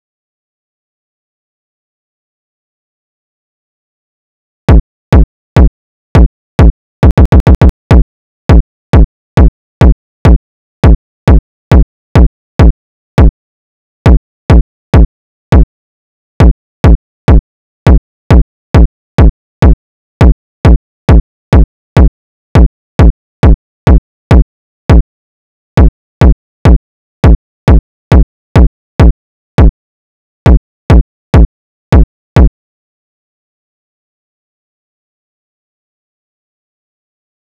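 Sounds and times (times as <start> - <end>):
kick drum: 4.7 - 13.4, 14.1 - 15.7, 16.4 - 25.1, 25.8 - 29.8, 30.5 - 32.6.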